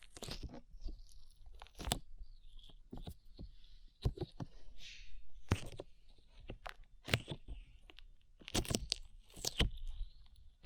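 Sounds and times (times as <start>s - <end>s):
slime: 0.0s - 2.1s, 5.5s - 10.6s.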